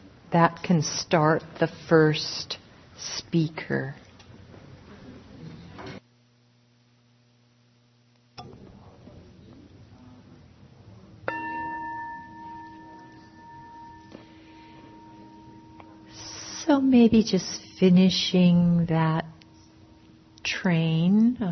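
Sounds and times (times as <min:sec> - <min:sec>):
speech: 0:00.3 - 0:04.0, 0:17.0 - 0:19.4, 0:20.4 - 0:21.5
bell rung to start speaker: 0:11.3 - 0:16.6.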